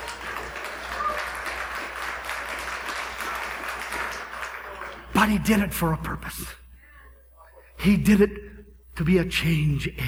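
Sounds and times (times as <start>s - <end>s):
audience clapping: 0.0s - 5.7s
speech: 5.2s - 6.6s, 7.8s - 8.4s, 9.0s - 10.0s.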